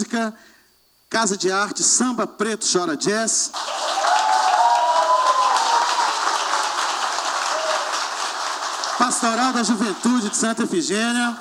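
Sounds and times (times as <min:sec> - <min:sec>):
speech: 0:00.0 - 0:04.1, 0:09.2 - 0:11.3
audience applause: 0:03.6 - 0:11.3.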